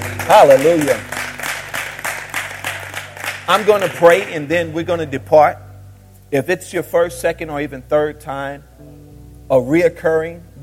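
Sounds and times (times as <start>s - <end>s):
audience clapping hands: 0.0s - 4.7s
speech: 0.3s - 1.2s, 3.5s - 5.6s, 6.3s - 10.6s.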